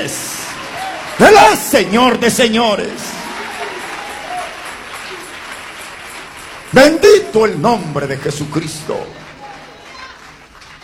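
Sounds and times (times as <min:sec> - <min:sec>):
speech: 0:00.0 - 0:00.3, 0:01.2 - 0:03.1, 0:06.7 - 0:09.2
audience applause: 0:00.0 - 0:10.8.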